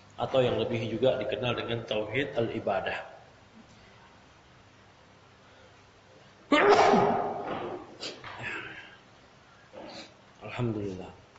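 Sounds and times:
speech: 0.2s - 3.1s, 10.6s - 11.2s
person sneezing: 6.5s - 8.7s.

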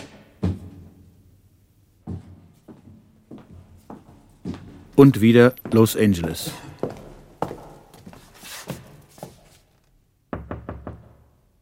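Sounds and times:
speech: 5.0s - 6.6s
knocking on a thick oak door: 10.3s - 11.3s.

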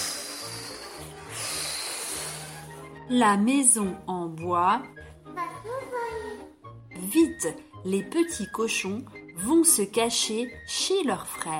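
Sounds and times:
voice imitating a wolf blowing hard: 0.0s - 2.8s
speech: 3.1s - 5.1s, 7.0s - 11.5s.

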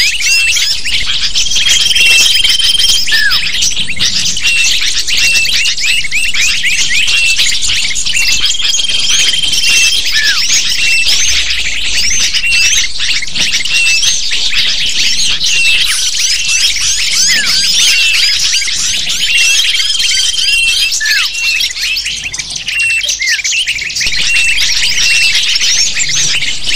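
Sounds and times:
lovebird chatter: 0.0s - 26.7s.

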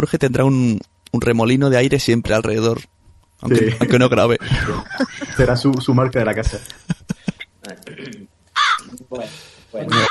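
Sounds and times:
speech: 0.0s - 6.9s, 9.1s - 10.0s
laughter: 3.7s - 7.5s
crow cawing: 8.5s - 8.9s, 9.9s - 10.0s.

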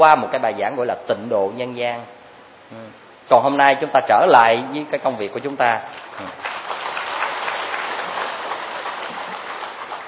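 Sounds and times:
speech: 0.0s - 6.6s
audience applauding during a Buddhist monk's dharma talk: 6.0s - 10.0s.

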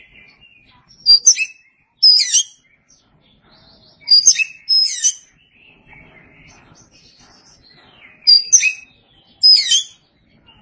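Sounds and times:
Oriental magpie-robin song: 0.0s - 10.6s.

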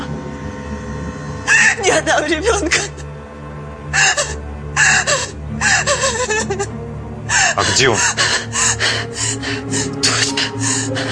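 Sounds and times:
woman gasping and moaning from labor contractions: 1.5s - 1.9s, 3.9s - 11.1s
speech: 1.8s - 3.0s, 7.6s - 9.8s.

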